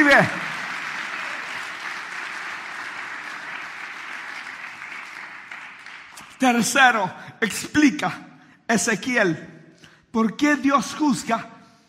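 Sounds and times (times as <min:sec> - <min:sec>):
speech: 0:00.0 - 0:00.5, 0:06.4 - 0:09.5, 0:10.1 - 0:11.5
audience applauding: 0:00.0 - 0:06.5.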